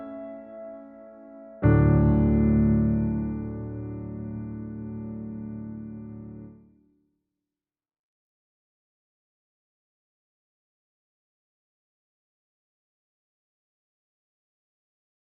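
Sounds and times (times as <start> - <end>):
piano cover: 0.0 - 6.5.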